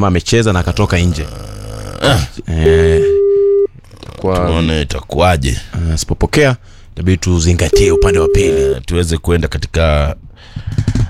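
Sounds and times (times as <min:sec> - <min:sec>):
speech: 0:00.0 - 0:03.2, 0:04.0 - 0:11.0
telephone ringing on an unanswered call: 0:02.7 - 0:03.7, 0:07.7 - 0:08.7.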